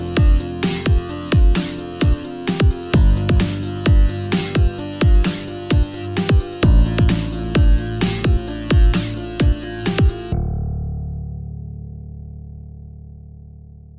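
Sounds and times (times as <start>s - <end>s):
heartbeat: 0.0s - 10.3s.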